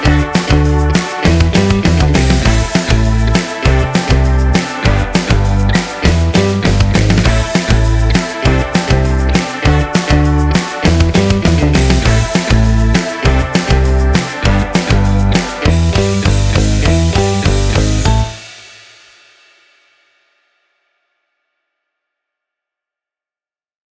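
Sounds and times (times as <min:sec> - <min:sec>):
upbeat energetic funk pop music: 0:00.0 - 0:18.5.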